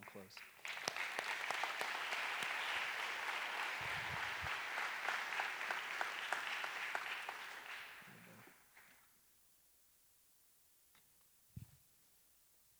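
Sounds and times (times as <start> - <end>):
round of applause: 0.0 - 9.1.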